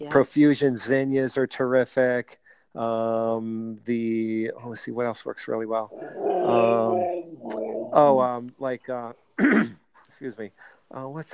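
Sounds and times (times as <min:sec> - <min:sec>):
speech: 0:00.0 - 0:11.3
husky growling and whimpering: 0:05.9 - 0:08.3.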